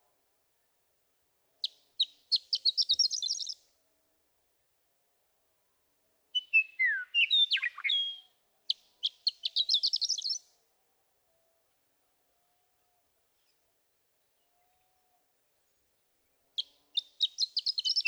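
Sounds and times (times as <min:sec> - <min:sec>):
Western Meadowlark singing: 0:01.6 - 0:03.6, 0:06.4 - 0:10.4, 0:16.6 - 0:18.0.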